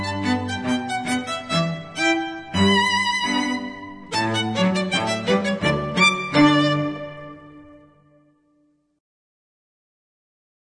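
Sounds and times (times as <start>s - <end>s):
violin playing a gavotte: 0.0s - 8.5s
cello playing a gavotte: 0.0s - 8.7s.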